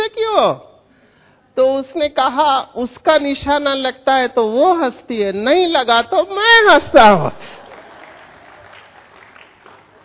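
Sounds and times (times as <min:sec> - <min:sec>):
speech: 0:00.4 - 0:00.7, 0:01.6 - 0:07.6
audience clapping at a talk: 0:07.3 - 0:10.0.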